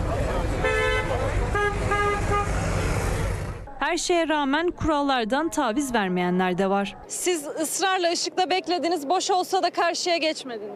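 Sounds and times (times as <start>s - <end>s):
steady roar of road noise in heavy megacity traffic: 0.0s - 7.2s
car horns honking in heavy megacity traffic: 0.5s - 3.5s
speech: 3.9s - 10.7s.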